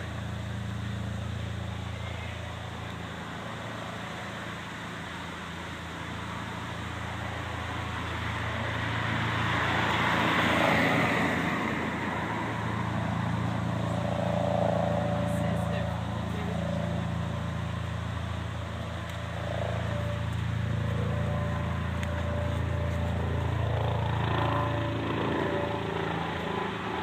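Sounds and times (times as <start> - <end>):
city soundscape in Hereford: 0.0 - 27.0.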